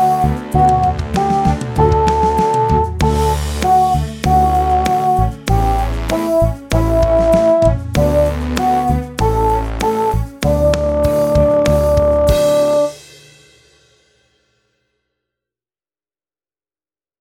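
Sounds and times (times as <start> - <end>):
German dance on ukulele: 0.0 - 12.9.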